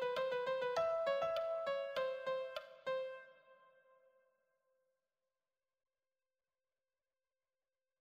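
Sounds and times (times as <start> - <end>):
lead piano: 0.0 - 3.3.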